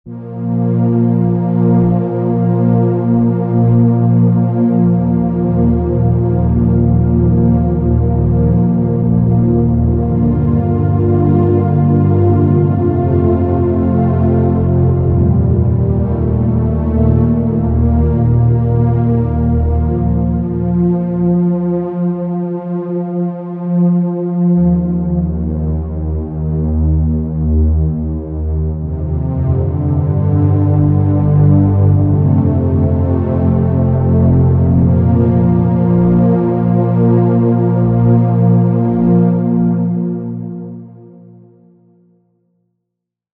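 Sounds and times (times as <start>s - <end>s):
underscore synth pad: 0.1s - 41.6s.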